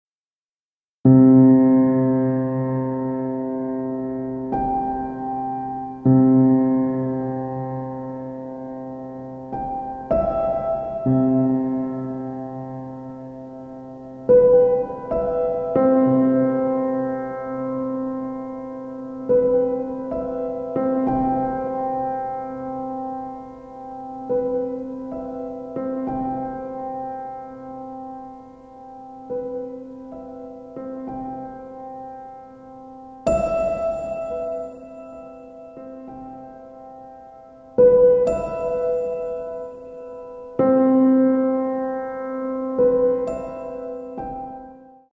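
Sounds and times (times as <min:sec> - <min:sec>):
piano: 0:01.0 - 0:45.1.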